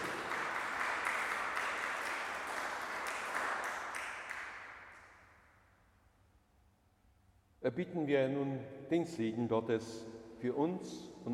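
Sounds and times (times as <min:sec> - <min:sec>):
audience applause in church: 0:00.0 - 0:04.8
speech: 0:07.6 - 0:11.3.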